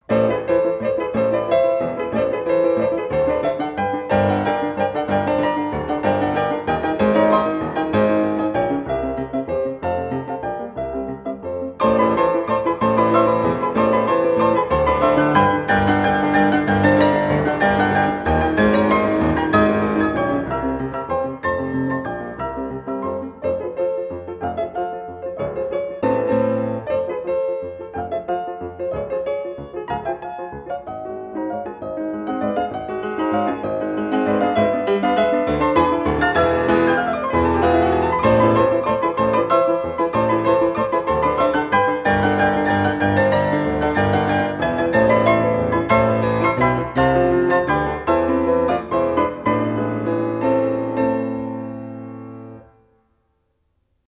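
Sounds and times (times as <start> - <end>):
waltz for piano four hands in A minor: 0.0 - 53.4.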